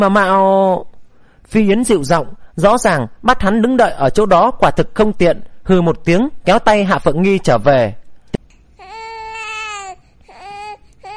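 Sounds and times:
speech: 0.0s - 8.0s
baby crying: 8.8s - 11.1s.

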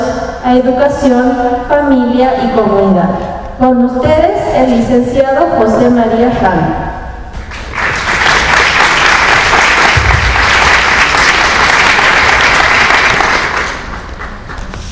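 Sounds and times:
speech: 0.4s - 6.9s
audience applause for a speaker: 7.4s - 14.7s.

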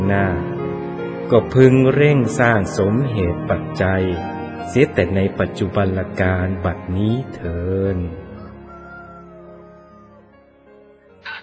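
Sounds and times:
speech: 0.1s - 0.5s, 1.3s - 8.2s
jungle fowl crowing: 8.4s - 10.3s.

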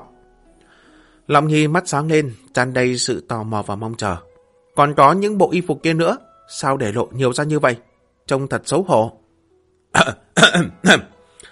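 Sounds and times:
speech: 1.3s - 9.2s, 9.9s - 11.2s
quick cough: 10.0s - 11.1s.

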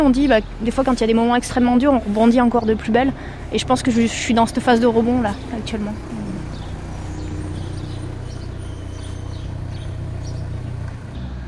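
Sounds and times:
speech: 0.0s - 6.2s
cars passing and reversing: 0.0s - 11.4s.

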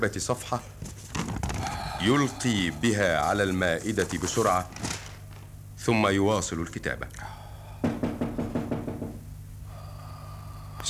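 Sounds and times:
speech: 0.0s - 1.0s, 2.0s - 4.9s, 5.8s - 7.4s
knocking on a wooden door: 7.8s - 9.2s.

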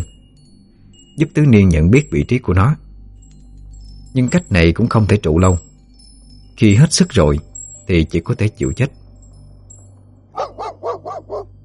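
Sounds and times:
low steady hum: 0.0s - 11.6s
speech: 1.2s - 2.8s, 4.2s - 5.7s, 6.6s - 9.0s
mastiff barking: 10.4s - 11.6s.

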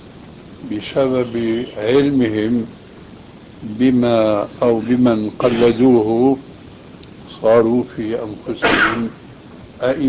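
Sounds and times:
speech: 0.6s - 2.8s, 3.6s - 6.5s, 7.4s - 9.2s, 9.8s - 10.0s
person sneezing: 5.5s - 5.8s, 8.6s - 9.2s.

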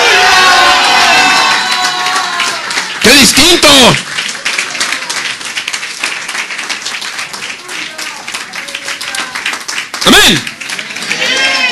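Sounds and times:
audience shouting for joy: 0.0s - 3.2s, 10.2s - 11.7s
speech: 3.0s - 4.2s, 10.3s - 10.5s.

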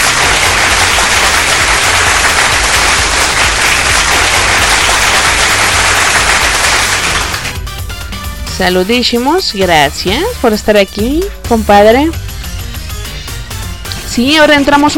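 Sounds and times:
applause for a guest on a live Spanish-language stream: 0.0s - 7.6s
speech: 8.6s - 12.2s, 14.2s - 14.9s.

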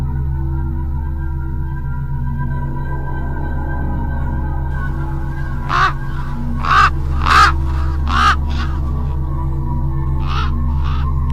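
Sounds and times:
low hum: 0.0s - 11.3s
crow cawing: 4.8s - 9.3s, 10.2s - 11.3s.

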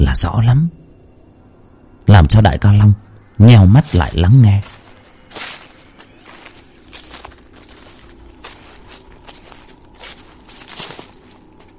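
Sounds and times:
speech: 0.0s - 0.8s, 2.1s - 4.8s, 5.4s - 5.6s
footsteps rustling on dry leaves: 3.8s - 11.7s.

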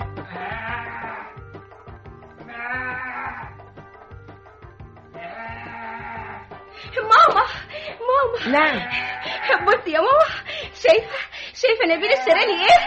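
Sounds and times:
sheep bleating: 0.0s - 1.6s, 2.4s - 3.7s, 5.1s - 6.6s, 8.4s - 9.9s, 12.0s - 12.8s
steady rhythmic background: 0.0s - 12.8s
speech: 6.9s - 12.8s.

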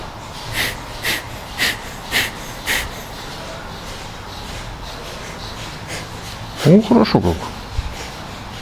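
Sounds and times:
forceful breathing through one nostril: 0.5s - 6.8s
speech: 6.7s - 7.6s.

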